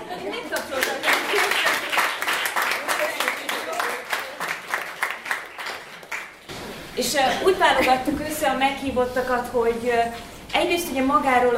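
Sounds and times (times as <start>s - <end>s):
audience applause: 0.5s - 6.4s
speech: 7.0s - 11.5s.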